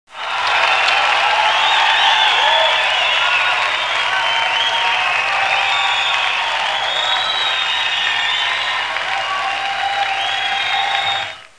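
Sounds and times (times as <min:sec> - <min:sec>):
large crowd cheering: 0:00.1 - 0:11.5.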